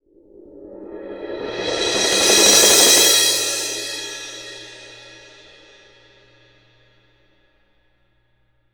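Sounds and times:
percussion cymbal: 0.8s - 7.1s.

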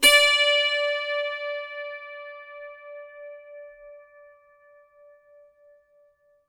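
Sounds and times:
dulcimer pluck on D5: 0.0s - 2.8s.

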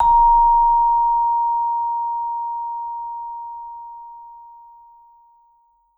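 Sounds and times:
vibraphone note A sharp 4: 0.0s - 1.8s.

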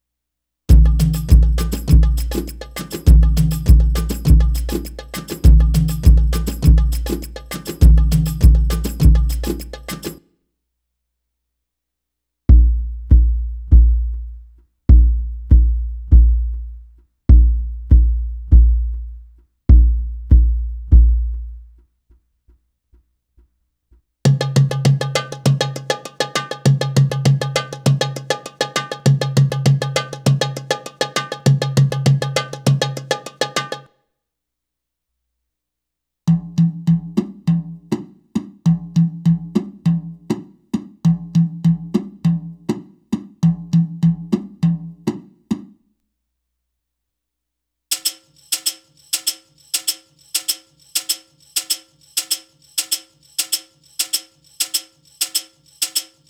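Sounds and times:
Arabic rhythm percussion: 0.7s - 10.2s, 12.5s - 21.7s, 24.3s - 33.9s, 36.3s - 45.7s, 47.9s - 56.2s.

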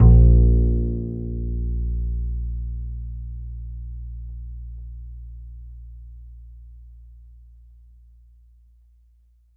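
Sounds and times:
upright acoustic bass A note: 0.0s - 3.5s.

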